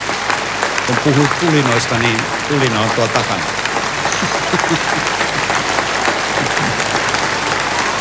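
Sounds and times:
audience standing ovation applause: 0.0s - 7.9s
speech: 0.9s - 3.6s, 4.2s - 5.1s
laughter: 1.0s - 7.9s.

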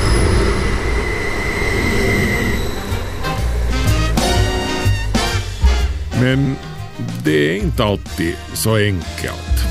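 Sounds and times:
thin metallic squeal: 0.0s - 5.7s
train rumbling on rails: 0.0s - 7.2s
speech: 6.3s - 9.6s.

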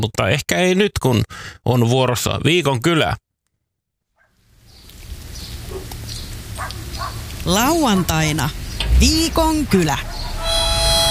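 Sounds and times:
speech: 0.0s - 3.2s, 7.4s - 10.2s
rushing outdoor background: 4.5s - 11.0s
dogs barking: 5.6s - 7.3s, 9.6s - 10.6s.

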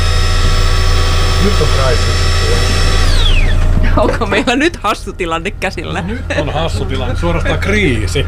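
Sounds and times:
coffee machine grinder running out of beans: 0.0s - 3.8s
speech: 1.4s - 3.2s, 3.9s - 8.2s
laughter: 3.7s - 8.2s.

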